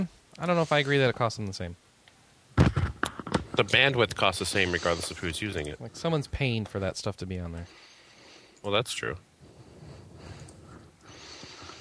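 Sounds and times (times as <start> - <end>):
speech: 0.0 - 1.8, 3.6 - 7.9, 8.6 - 9.3
mouth breathing: 4.5 - 5.4, 9.4 - 11.7.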